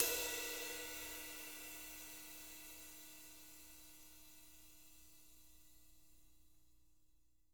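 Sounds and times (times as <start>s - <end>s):
ride cymbal: 0.0s - 5.5s.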